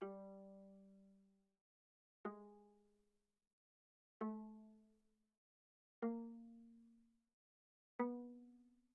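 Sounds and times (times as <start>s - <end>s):
viola pizzicato on the G string: 0.0s - 1.2s, 2.3s - 2.8s, 4.2s - 4.7s, 6.0s - 7.0s, 8.0s - 8.6s.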